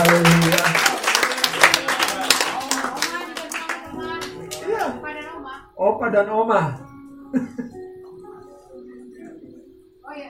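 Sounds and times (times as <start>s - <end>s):
crowd clapping: 0.0s - 5.0s
speech: 6.0s - 7.7s.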